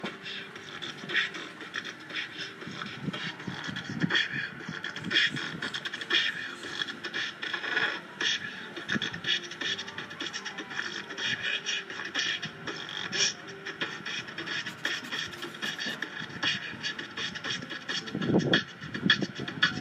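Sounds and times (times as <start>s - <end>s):
beatbox: 0.0s - 19.7s.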